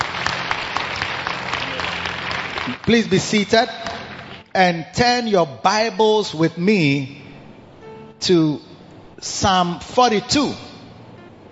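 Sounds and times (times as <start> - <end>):
audience applause: 0.0 - 4.5
speech: 2.7 - 3.9, 4.6 - 7.2, 8.2 - 10.7.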